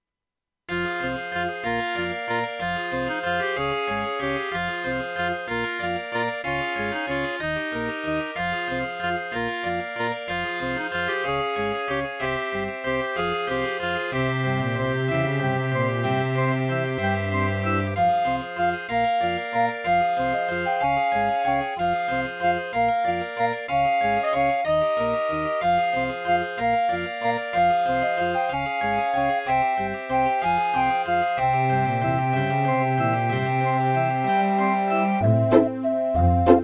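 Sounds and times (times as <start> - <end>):
Ensoniq VIVO 90DB-A digital piano: 0.7 - 36.6.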